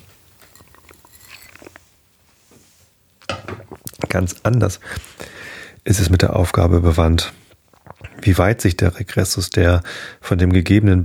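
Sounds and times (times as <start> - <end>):
person taking a sip of water: 0.4 - 2.0, 3.5 - 5.8, 7.5 - 8.4
speech: 4.1 - 7.4, 8.3 - 11.0.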